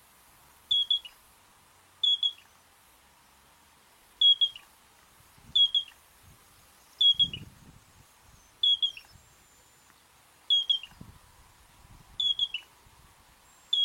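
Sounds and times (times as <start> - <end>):
Yellow-breasted Crake giving short high whistled notes: 0.7 - 1.2, 2.0 - 2.5, 4.2 - 4.6, 5.6 - 6.0, 7.0 - 7.5, 8.5 - 9.2, 10.5 - 11.0, 12.2 - 12.7.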